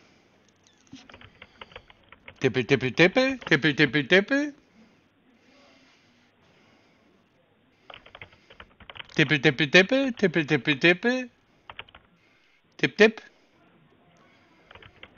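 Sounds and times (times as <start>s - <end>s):
typing on a computer keyboard: 0.5s - 3.9s, 7.9s - 10.5s, 11.6s - 12.2s, 14.6s - 15.1s
person talking: 1.0s - 6.1s, 9.1s - 11.4s, 12.8s - 15.1s.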